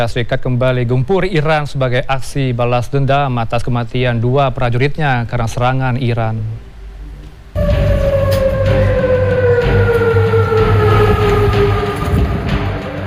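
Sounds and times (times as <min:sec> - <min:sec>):
speech: 0:00.0 - 0:06.7
air raid warning sirens echoing across Amman: 0:07.6 - 0:13.0.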